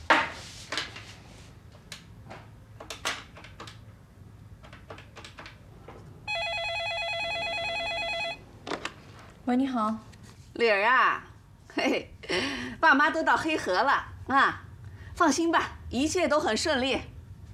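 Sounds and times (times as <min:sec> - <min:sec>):
landline telephone ringing: 0:06.3 - 0:08.5
speech: 0:09.5 - 0:14.6, 0:15.2 - 0:17.1.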